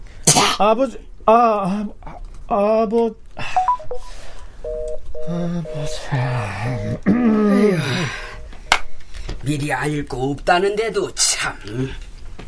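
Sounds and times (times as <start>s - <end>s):
speech: 0.6s - 4.0s, 5.2s - 8.2s, 9.4s - 12.1s
telephone number being dialed on keypad: 3.6s - 6.9s
wavering voice: 5.2s - 8.5s.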